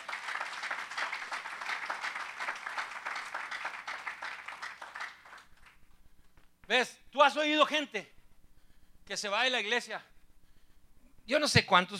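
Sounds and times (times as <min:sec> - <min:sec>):
audience applause: 0:00.0 - 0:05.8
speech: 0:06.7 - 0:08.2, 0:09.1 - 0:10.1, 0:11.3 - 0:11.9.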